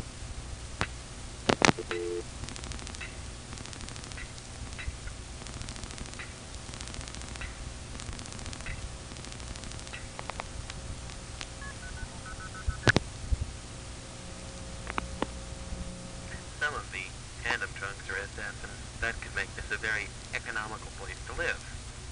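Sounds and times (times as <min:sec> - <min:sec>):
faint telephone line static: 0:00.0 - 0:22.1
light clicks: 0:00.8 - 0:11.5, 0:14.8 - 0:15.3
multi-frequency telephone signaling tones dialing into an Arlington exchange: 0:01.8 - 0:02.2, 0:11.6 - 0:12.9.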